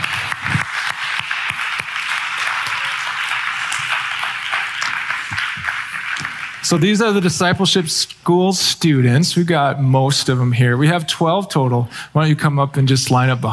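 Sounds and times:
audience clapping: 0:00.0 - 0:07.7
speech: 0:06.7 - 0:13.5.

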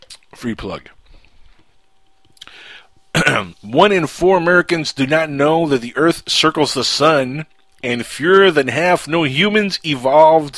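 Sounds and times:
speech: 0:00.4 - 0:01.0, 0:03.4 - 0:10.5
person sipping Mountain Dew Code Red: 0:02.4 - 0:02.7.

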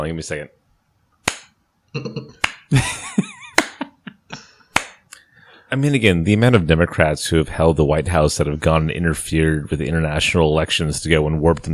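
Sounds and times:
speech: 0:00.0 - 0:00.6, 0:01.9 - 0:03.1, 0:05.7 - 0:11.7
slow clap: 0:02.4 - 0:02.7, 0:03.6 - 0:03.9, 0:04.8 - 0:05.1.

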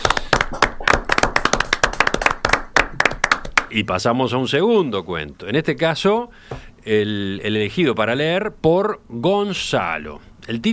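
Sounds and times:
audience applause: 0:00.0 - 0:03.7
speech: 0:03.7 - 0:10.7.

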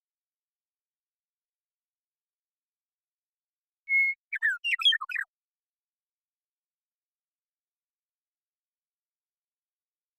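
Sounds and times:
western meadowlark singing: 0:03.9 - 0:05.3.

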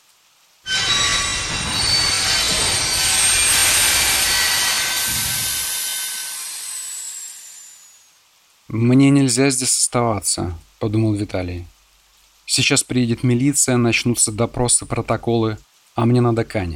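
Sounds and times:
train slowing to a stop with screeching brakes: 0:00.7 - 0:08.0
speech: 0:08.7 - 0:11.8, 0:12.5 - 0:16.7.

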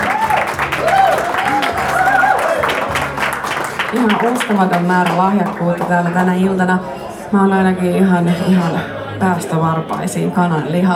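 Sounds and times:
audience applause: 0:00.0 - 0:06.7
laughter: 0:00.0 - 0:10.9
speech: 0:04.0 - 0:10.9.

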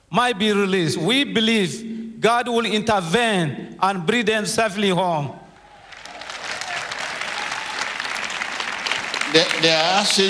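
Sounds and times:
speech: 0:00.1 - 0:05.4, 0:09.3 - 0:10.2
audience applause: 0:05.6 - 0:10.2.

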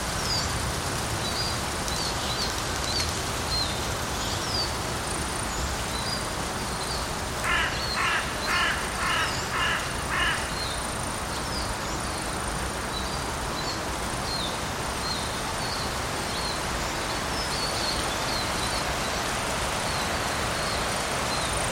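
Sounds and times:
rustling leaves in Kleinschwarzenlohe Forest, Nuremberg: 0:00.0 - 0:21.7
soft rain in Kleinschwarzenlohe Forest, Nuremberg: 0:00.0 - 0:21.7
wind hiss in Kleinschwarzenlohe Forest, Nuremberg: 0:00.0 - 0:21.7
crow giving harsh caws: 0:07.4 - 0:10.6.

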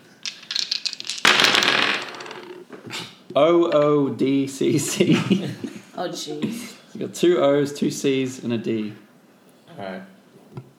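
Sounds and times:
dice being rolled: 0:00.2 - 0:02.8
speech: 0:03.4 - 0:09.0, 0:09.8 - 0:10.1.

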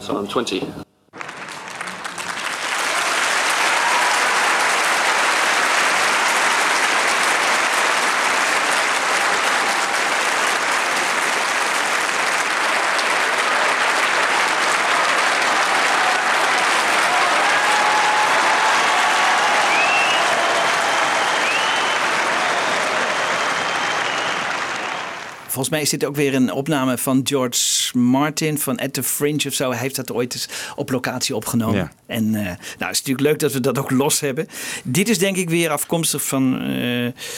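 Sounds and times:
speech: 0:00.1 - 0:00.8, 0:25.6 - 0:37.3
archival applause from a large audience: 0:01.1 - 0:25.5.

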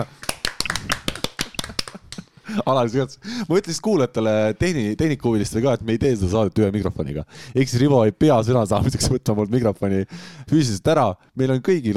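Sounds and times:
applause in the studio: 0:00.2 - 0:02.1
laughter: 0:01.0 - 0:02.3
speech: 0:02.5 - 0:11.9.

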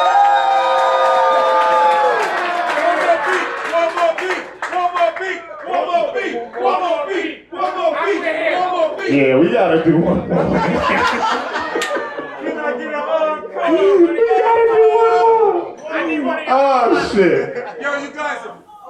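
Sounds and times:
crowd clapping: 0:00.0 - 0:06.8, 0:11.0 - 0:12.4
crowd cheering and shouting: 0:00.0 - 0:17.2
speech: 0:09.1 - 0:11.4
laughter: 0:09.7 - 0:14.1, 0:16.9 - 0:18.5.

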